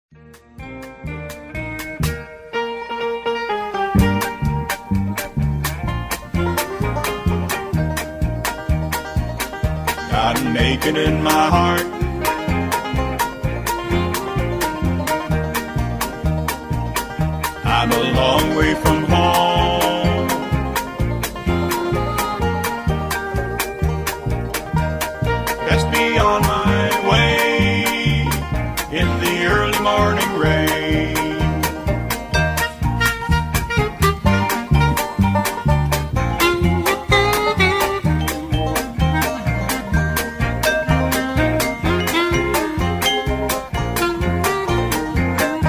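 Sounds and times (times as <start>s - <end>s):
instrumental music: 0.1s - 45.6s
background vocals: 17.6s - 20.6s, 25.7s - 31.8s.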